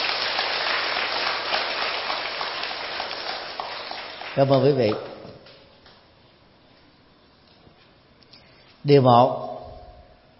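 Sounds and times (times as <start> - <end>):
loud round of applause: 0.0 - 5.3
speech: 4.4 - 5.1, 8.8 - 9.4.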